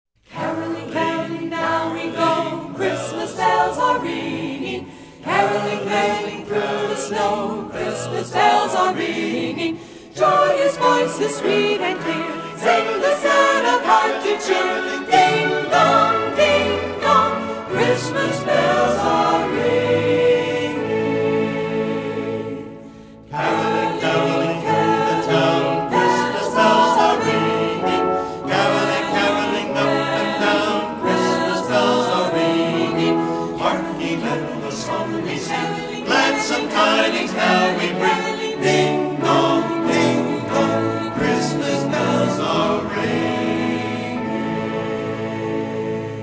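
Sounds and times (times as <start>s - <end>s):
people caroling: 0.3s - 46.2s.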